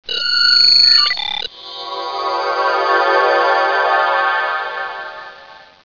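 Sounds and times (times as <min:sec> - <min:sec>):
transporter beam effect: 0:01.5 - 0:05.8.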